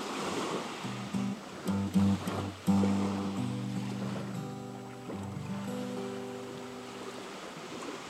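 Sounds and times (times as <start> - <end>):
guitar: 0.8 - 7.2.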